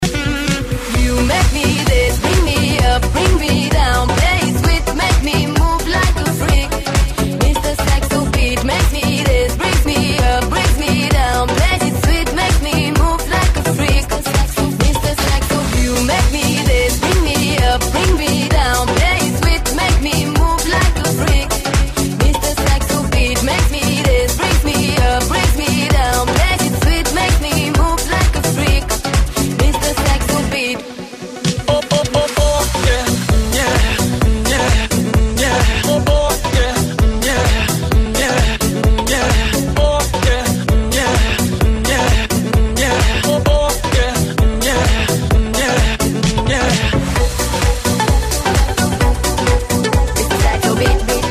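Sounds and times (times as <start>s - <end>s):
saxophone dance beat: 0.0s - 51.2s.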